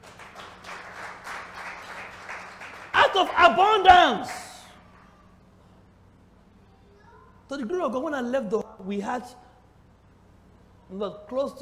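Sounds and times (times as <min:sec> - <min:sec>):
audience clapping: 0:00.0 - 0:04.8
speech: 0:03.1 - 0:04.4, 0:07.5 - 0:09.4, 0:10.9 - 0:11.5.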